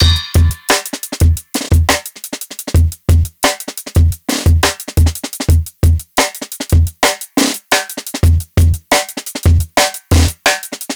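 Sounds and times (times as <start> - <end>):
live jungle drum break: 0.0 - 10.9.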